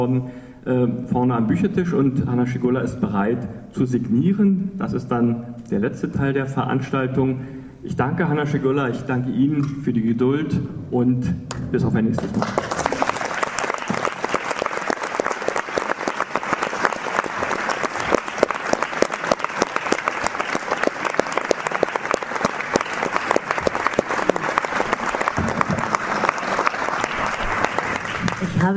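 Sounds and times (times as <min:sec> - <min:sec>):
speech: 0:00.0 - 0:12.8
audience clapping: 0:12.1 - 0:28.7.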